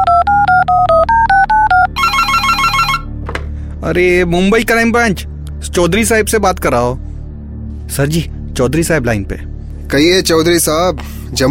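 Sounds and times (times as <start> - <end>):
fast-warbling electronic telephone ring: 0.0 - 3.1
telephone touch-tone dialing beeps: 0.0 - 3.1
speech: 3.9 - 7.0, 7.9 - 11.4.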